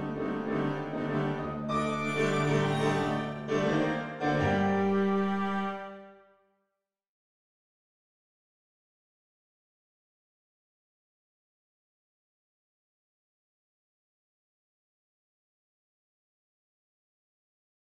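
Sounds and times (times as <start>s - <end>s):
tango music: 0.0s - 6.1s.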